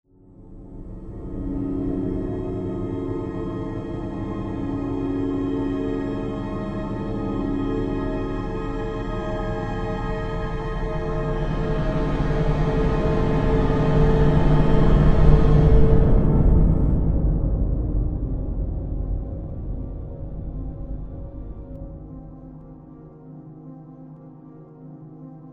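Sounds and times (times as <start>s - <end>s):
spooky music: 0.2s - 25.5s.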